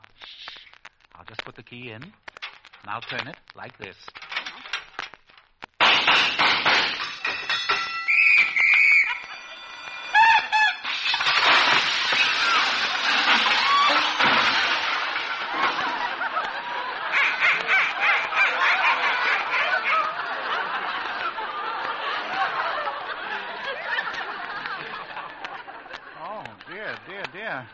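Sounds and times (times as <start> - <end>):
speech: 1.5 - 4.2
squeaking door hinges: 6.8 - 14.5
laughter: 12.5 - 27.7.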